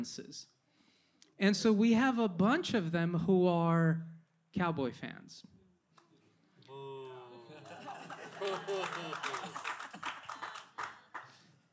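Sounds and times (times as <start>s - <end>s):
speech: 0.0s - 0.6s, 1.4s - 5.6s, 8.4s - 9.6s
laughter: 6.7s - 11.0s
few people clapping: 7.0s - 11.7s.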